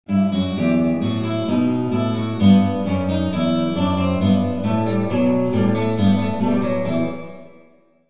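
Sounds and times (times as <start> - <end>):
guitar concert: 0.1 - 7.7.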